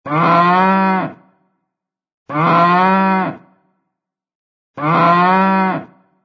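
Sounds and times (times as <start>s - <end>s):
cow: 0.1s - 1.4s, 2.3s - 3.6s, 4.8s - 6.1s.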